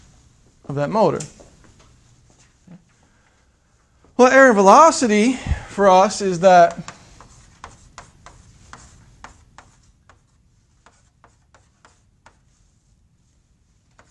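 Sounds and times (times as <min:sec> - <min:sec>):
speech: 0:00.6 - 0:01.4, 0:04.2 - 0:06.9
writing an equation on a board: 0:06.7 - 0:13.0, 0:13.9 - 0:14.0.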